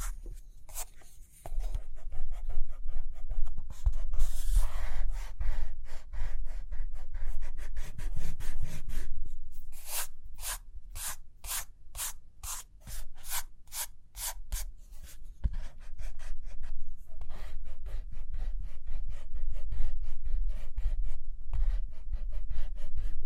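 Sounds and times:
pen or pencil writing and drawing on paper: 0.0s - 9.1s, 9.7s - 23.2s.

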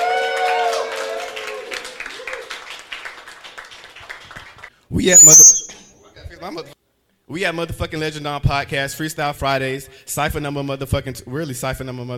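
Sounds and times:
crowd clapping to welcome rap artists at a freestyle cypher: 0.0s - 4.7s
speech: 4.9s - 5.6s, 6.4s - 12.1s
shrill whistle from a crowd: 5.0s - 5.8s.

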